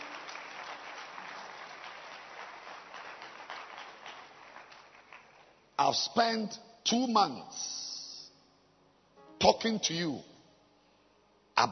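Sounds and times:
audience clapping hands: 0:00.0 - 0:05.8
speech: 0:05.8 - 0:07.8, 0:09.4 - 0:10.3.

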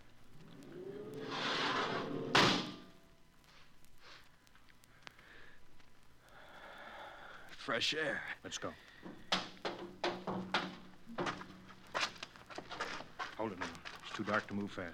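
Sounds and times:
outer airlock door opening hiss: 0:00.4 - 0:02.9
heavy outer airlock door thud: 0:01.2 - 0:02.9, 0:09.3 - 0:11.5
speech: 0:07.7 - 0:09.2, 0:13.5 - 0:14.9
faint knocks: 0:09.0 - 0:13.9.

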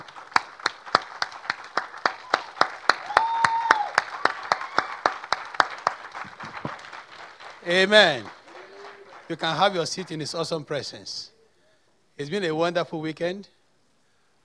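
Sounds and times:
audience clapping: 0:00.0 - 0:10.9
speech: 0:07.7 - 0:08.4, 0:09.3 - 0:11.3, 0:12.2 - 0:13.6.

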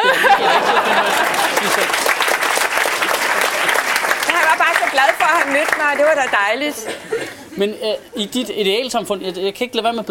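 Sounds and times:
laughter: 0:00.0 - 0:02.2, 0:06.7 - 0:07.7
audience applause: 0:00.0 - 0:06.5
speech: 0:06.0 - 0:10.0.

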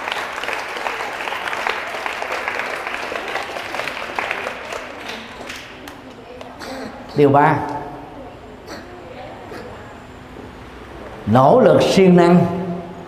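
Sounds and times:
big round of applause: 0:00.0 - 0:06.2
speech: 0:07.2 - 0:07.7, 0:11.3 - 0:12.6.

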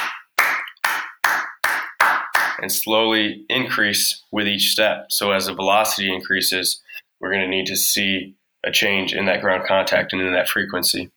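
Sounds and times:
hand claps marking the rhythm of sprint ground contacts: 0:00.0 - 0:02.7
speech: 0:02.6 - 0:11.1.

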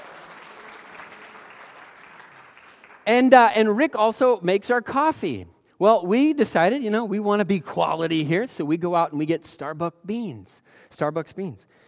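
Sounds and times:
round of applause: 0:00.0 - 0:03.3
speech: 0:03.1 - 0:11.8.

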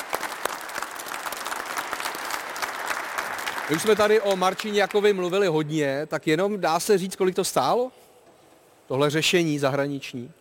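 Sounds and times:
group applauding: 0:00.0 - 0:05.5
speech: 0:03.7 - 0:08.0, 0:08.9 - 0:10.3.

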